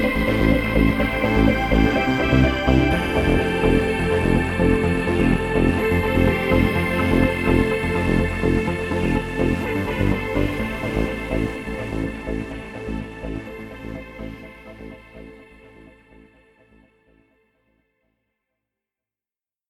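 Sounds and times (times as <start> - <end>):
trance waves: 0.0 - 14.8.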